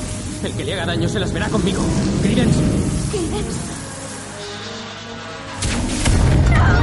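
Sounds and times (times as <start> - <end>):
speech: 0.4 - 3.8
magic wands fired at one target in Fantastic Beasts and Where to Find Them: 5.6 - 6.6.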